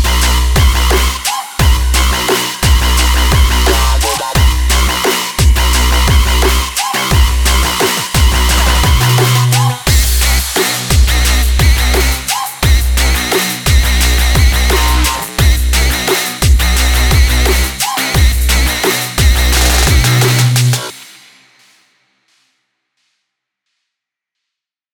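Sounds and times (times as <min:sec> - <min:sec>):
energetic dance trap music: 0:00.0 - 0:22.5.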